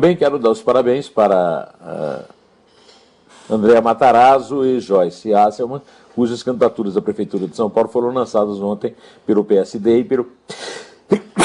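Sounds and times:
speech: 0:00.0 - 0:02.4, 0:03.5 - 0:11.4
person sneezing: 0:10.5 - 0:11.4.

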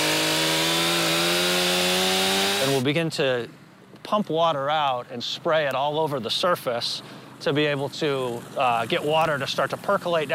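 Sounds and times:
chainsaw cutting an ice fishing hole: 0:00.0 - 0:02.8
speech: 0:02.7 - 0:10.3.

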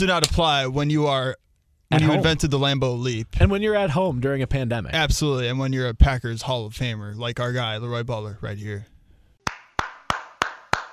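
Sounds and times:
speech: 0:00.0 - 0:08.9
hands clapping: 0:09.4 - 0:10.9.

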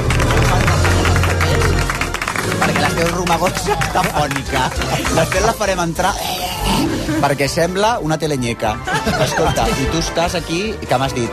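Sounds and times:
studio applause: 0:00.0 - 0:06.0
laughter: 0:02.5 - 0:06.2, 0:08.7 - 0:10.3
speech: 0:03.3 - 0:11.3.

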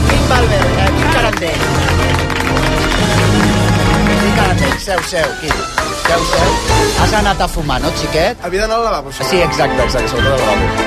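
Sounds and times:
audience applause: 0:00.0 - 0:07.0
speech: 0:04.9 - 0:10.8.

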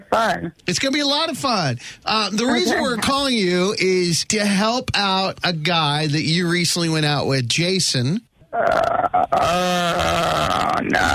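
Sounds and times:
speech: 0:00.1 - 0:11.1
person imitating a bear roar: 0:08.6 - 0:11.1.

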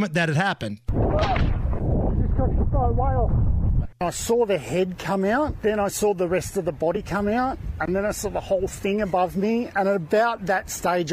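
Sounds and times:
speech: 0:00.0 - 0:11.1
humpback whale crashing down into the water: 0:00.9 - 0:02.0.

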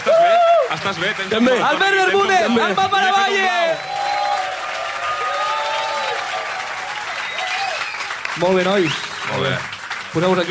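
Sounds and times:
audience applause: 0:00.0 - 0:10.5
speech: 0:00.7 - 0:04.0, 0:08.4 - 0:10.5
faint tonal whoops or whistles: 0:03.7 - 0:04.5, 0:07.2 - 0:08.1.

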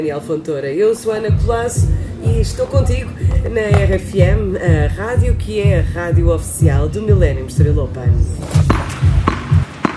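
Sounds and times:
speech: 0:00.0 - 0:09.1
tennis ball being struck: 0:08.5 - 0:09.9.

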